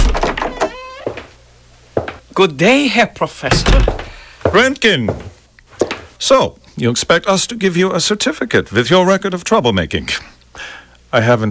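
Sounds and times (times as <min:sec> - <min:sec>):
door creaking open on a squeaky hinge: 0:00.0 - 0:01.3, 0:03.5 - 0:04.2
speech: 0:02.4 - 0:05.2, 0:06.2 - 0:11.4
door shutting with a solid thunk: 0:03.5 - 0:04.2.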